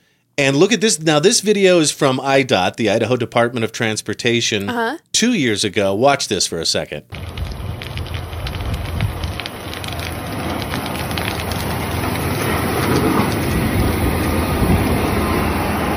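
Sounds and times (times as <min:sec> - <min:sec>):
speech: 0:00.4 - 0:07.5
low rumble: 0:07.1 - 0:15.9
snow plow blade scraping along a road: 0:07.2 - 0:15.9.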